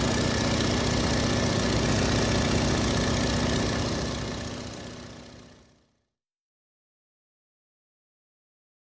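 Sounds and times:
light aircraft engine idling: 0.0 - 6.0.

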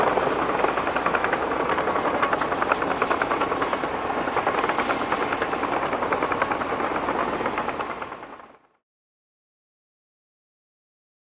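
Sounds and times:
cement mixer rolling: 0.0 - 8.7.

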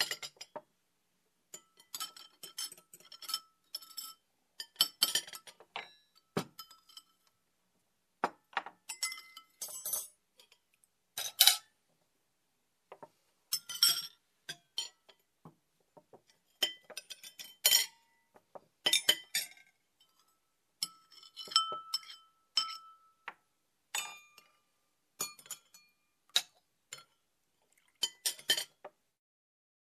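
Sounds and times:
plates and cutlery clinking while dining: 0.0 - 0.6, 1.6 - 7.3, 8.3 - 10.6, 11.2 - 11.7, 13.5 - 15.3, 16.2 - 18.2, 18.8 - 27.2, 27.9 - 28.9.

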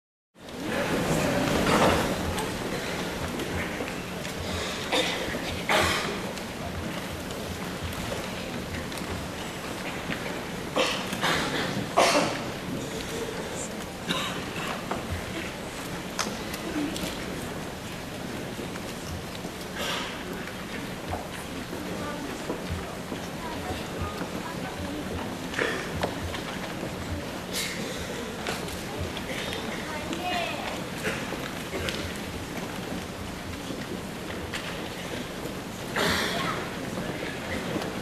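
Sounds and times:
hospital lobby ambience: 0.4 - 38.0.

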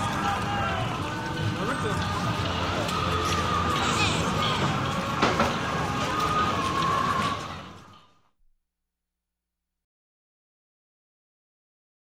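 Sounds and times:
busy street: 0.0 - 8.2.

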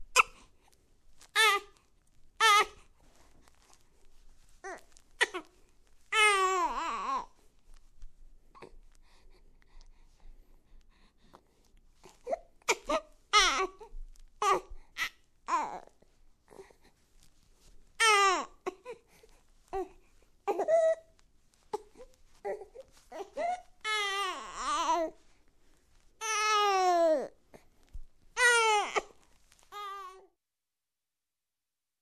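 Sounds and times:
newborn baby trying to talk: 1.3 - 1.8, 2.4 - 2.8, 4.6 - 5.5, 6.1 - 7.4, 12.1 - 16.8, 18.0 - 19.1, 19.7 - 25.2, 26.2 - 27.4, 28.4 - 30.3.

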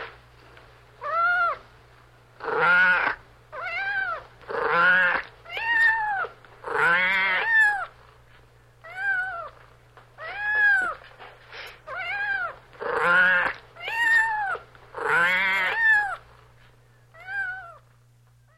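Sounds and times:
low steady hum: 0.0 - 18.5
cat meowing: 1.0 - 1.6, 2.4 - 7.9, 8.8 - 9.6, 10.2 - 11.0, 11.9 - 16.2, 17.2 - 17.8.

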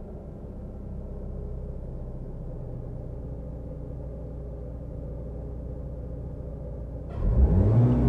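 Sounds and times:
car starting heard from the cockpit: 7.0 - 8.0.

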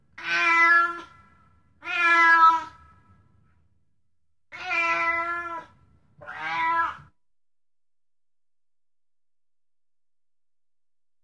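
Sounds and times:
cat meowing: 0.2 - 1.2, 1.8 - 2.8, 4.5 - 7.2.

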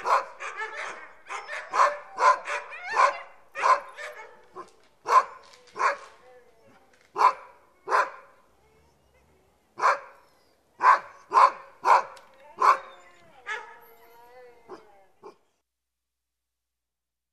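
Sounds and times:
many dogs barking: 0.0 - 6.2, 7.1 - 8.4, 9.8 - 10.2, 10.8 - 13.8
many dogs whining: 0.0 - 11.2, 11.8 - 15.5.

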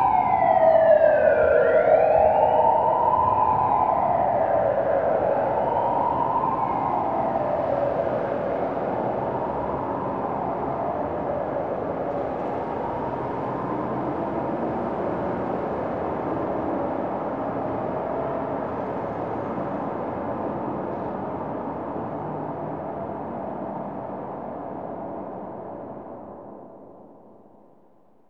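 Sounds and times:
police siren in city traffic: 0.0 - 28.0.

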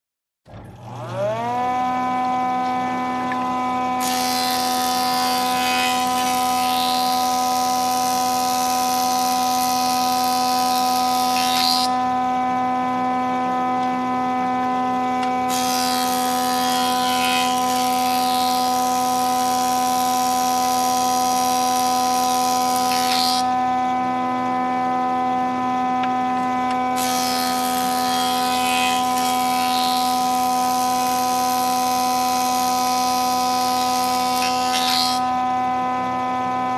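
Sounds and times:
construction noise: 0.5 - 36.7.

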